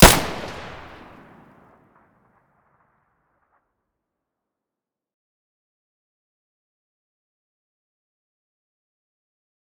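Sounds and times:
weapon muzzle blasts: 0.0s - 1.4s.

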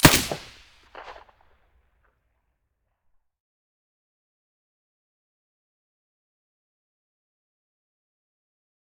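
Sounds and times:
SA58 rifle shots with silencer: 0.0s - 1.3s.

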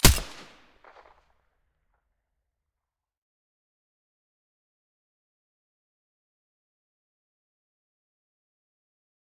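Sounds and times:
MDR rifle gunshots with silencer: 0.0s - 1.0s.

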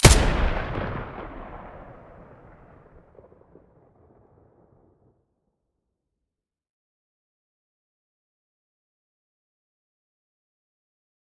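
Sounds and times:
HK416 rifle muzzle blast: 0.0s - 2.8s.

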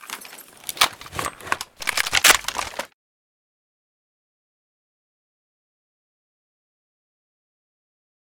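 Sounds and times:
reload: 1.0s - 2.9s.

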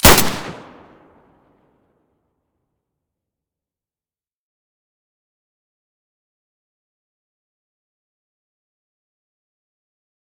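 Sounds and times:
M9A3 muzzle blast: 0.0s - 1.1s.

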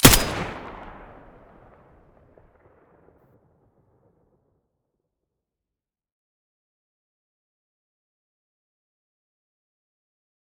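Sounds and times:
M4A1 rifle muzzle gunshot: 0.0s - 1.8s.

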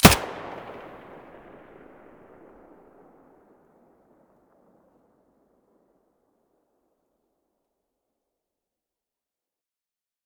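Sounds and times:
MP5 muzzle gunfire: 0.0s - 1.8s.

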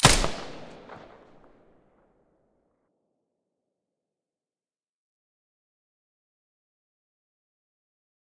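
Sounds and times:
P90 firing with silencer: 0.0s - 1.6s.

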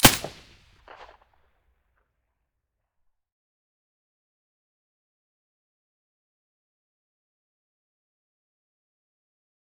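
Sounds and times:
suppressed gunshot: 0.0s - 1.0s.

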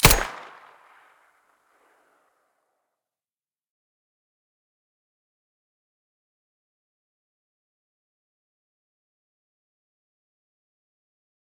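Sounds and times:
weapon muzzle blasts: 0.0s - 0.7s.

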